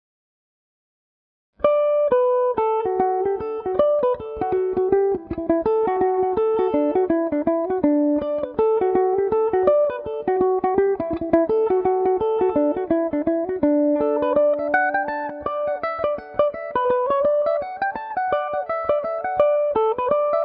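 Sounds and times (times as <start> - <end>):
Irish mandolin playing in D major: 1.6 - 20.4.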